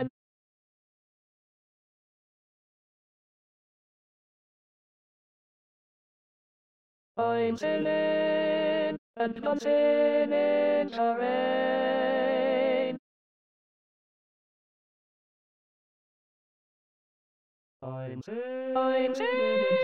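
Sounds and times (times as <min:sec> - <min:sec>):
alto voice singing in an SATB choir part: 0:07.2 - 0:13.0, 0:18.3 - 0:19.8.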